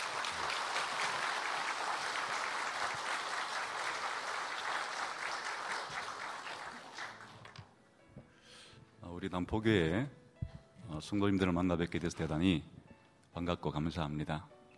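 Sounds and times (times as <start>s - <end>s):
large crowd applause welcoming a speaker: 0.0s - 7.6s
speech: 9.2s - 10.2s, 11.0s - 12.8s, 13.4s - 14.5s.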